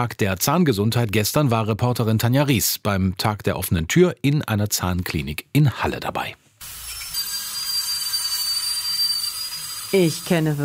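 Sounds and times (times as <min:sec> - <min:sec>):
speech: 0:00.0 - 0:06.4, 0:09.9 - 0:10.6
dental drill whirring: 0:06.6 - 0:10.6.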